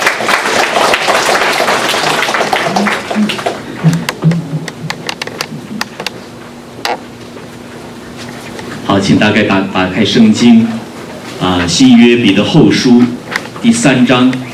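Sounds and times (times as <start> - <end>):
audience applause: 0.0 - 4.0
speech: 9.0 - 10.8, 11.4 - 14.4.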